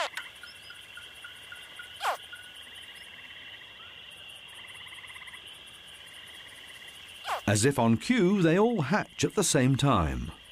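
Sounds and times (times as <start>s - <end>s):
baby crocodiles chirping inside their eggs: 0.0s - 0.8s, 1.5s - 2.5s, 7.2s - 7.5s
speech: 7.5s - 10.4s.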